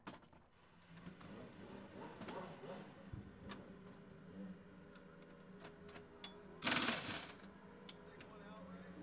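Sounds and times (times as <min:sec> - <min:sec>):
race track pit crew: 0:00.0 - 0:09.0.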